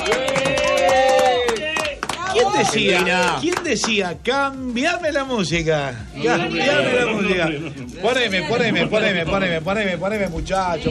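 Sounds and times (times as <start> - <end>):
applause for the national team: 0.0 - 4.0
speech: 2.6 - 10.8.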